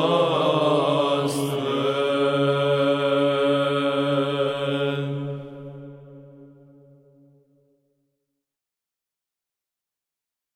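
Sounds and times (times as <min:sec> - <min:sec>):
liturgical chant: 0:00.0 - 0:06.8.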